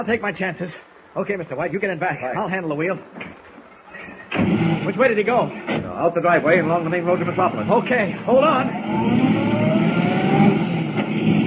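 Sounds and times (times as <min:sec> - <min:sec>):
speech: 0:00.0 - 0:03.4, 0:04.4 - 0:09.5
car engine roaring speeding out of a sanatorium driveway onto concrete road: 0:04.3 - 0:11.4.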